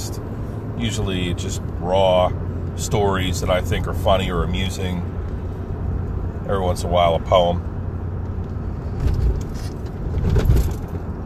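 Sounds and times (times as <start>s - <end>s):
car rolling with low rumble: 0.0s - 11.2s
speech: 0.8s - 5.2s, 6.5s - 7.7s
car jolting and rattling over bumps: 8.1s - 11.2s.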